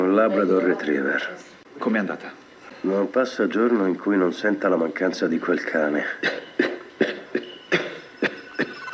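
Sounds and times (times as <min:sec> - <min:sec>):
speech: 0:00.1 - 0:06.4
patient coughing: 0:06.2 - 0:08.8.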